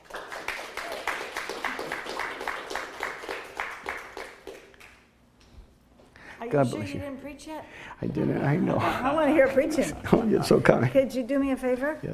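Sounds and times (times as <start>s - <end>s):
audience applause: 0.0s - 5.0s
speech: 6.5s - 12.1s.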